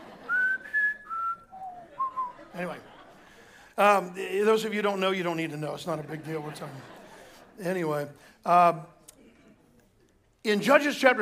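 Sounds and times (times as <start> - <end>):
laughter: 0.0 - 4.4, 5.3 - 8.2
person whistling a film motif: 0.3 - 2.4
speech: 2.6 - 3.0, 3.8 - 7.0, 7.6 - 9.0, 10.4 - 11.2.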